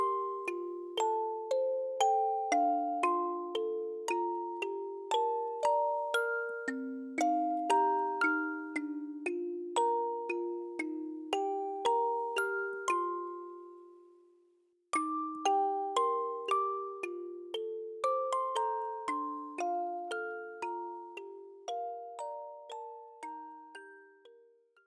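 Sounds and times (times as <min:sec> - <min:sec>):
robotic synth music box: 0:00.0 - 0:14.1, 0:15.0 - 0:24.8.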